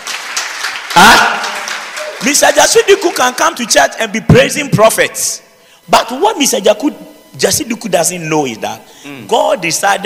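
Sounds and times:
audience clapping: 0.0 - 3.6
person shouting: 1.0 - 1.6
speech: 2.2 - 10.0.

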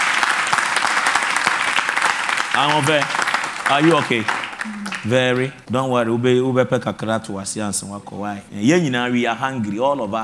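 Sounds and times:
audience clapping: 0.0 - 6.1
speech: 2.6 - 10.2.

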